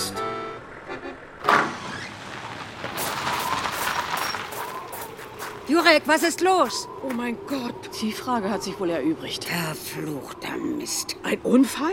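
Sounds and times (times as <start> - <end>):
car arriving, towing another car: 0.0 - 5.6
speech: 5.7 - 11.9.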